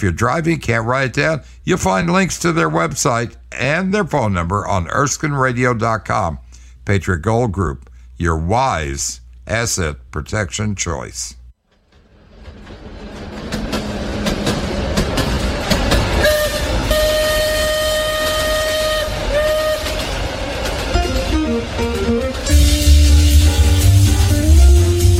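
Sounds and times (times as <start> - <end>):
speech: 0.0 - 11.4
train rumbling and clattering: 11.6 - 25.1
train horn: 16.2 - 20.2, 20.9 - 25.1.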